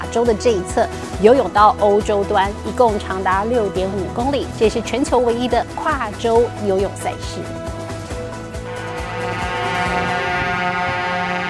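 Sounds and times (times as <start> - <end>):
speech: 0.1 - 7.6
starting horn blowing: 8.5 - 11.4.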